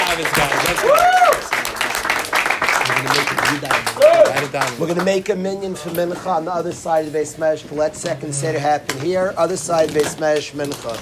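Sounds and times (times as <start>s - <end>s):
voices chattering and cheering: 0.0s - 1.8s, 2.8s - 6.0s
group applause: 0.0s - 5.3s
speech: 0.2s - 1.1s, 3.5s - 11.0s.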